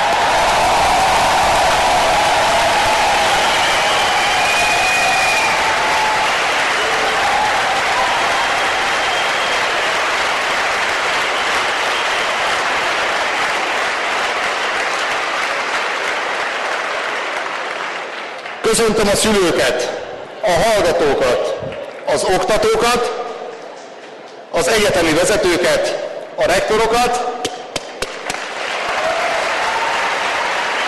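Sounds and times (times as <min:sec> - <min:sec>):
sustained applause from a large crowd: 0:00.0 - 0:19.2, 0:28.0 - 0:30.8
speech: 0:18.7 - 0:23.2, 0:24.6 - 0:27.3.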